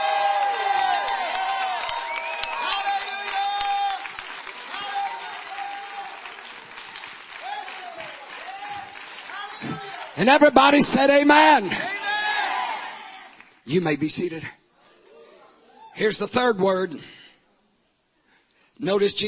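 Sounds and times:
audience clapping and shouting: 0.0 - 13.6
speech: 10.2 - 11.9, 13.7 - 14.6, 16.0 - 17.2, 18.8 - 19.2.

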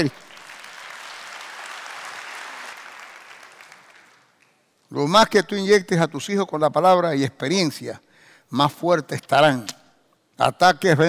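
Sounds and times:
speech: 0.0 - 0.2, 4.9 - 9.8, 10.4 - 11.0
audience applause: 0.0 - 4.4.

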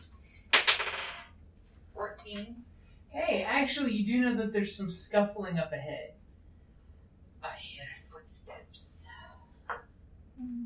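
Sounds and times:
dice rolled on a table: 0.5 - 1.4
speech: 2.2 - 6.2.

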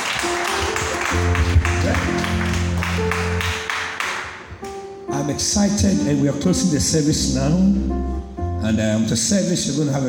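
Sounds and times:
audience clapping hands: 0.0 - 4.5
speech: 5.3 - 10.0.

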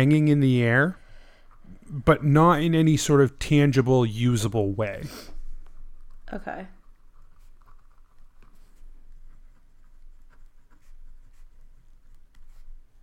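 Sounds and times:
speech: 0.0 - 1.0, 1.9 - 5.3, 6.3 - 6.8
pen scratching on paper as someone writes notes: 5.1 - 12.9.

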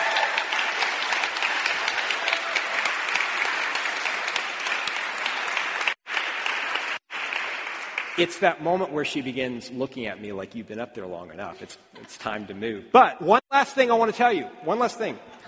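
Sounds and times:
audience round of applause: 0.0 - 8.4
speech: 8.2 - 15.4.

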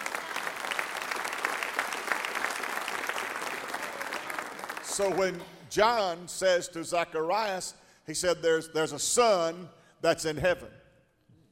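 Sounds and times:
audience hand clapping: 0.0 - 5.5
speech: 5.0 - 10.8.

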